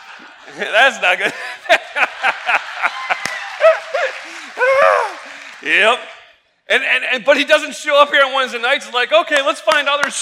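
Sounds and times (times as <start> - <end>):
laughter: 0.0 - 5.6
speech: 0.2 - 3.2, 5.6 - 6.1, 6.7 - 10.2
audience applause: 1.7 - 6.1.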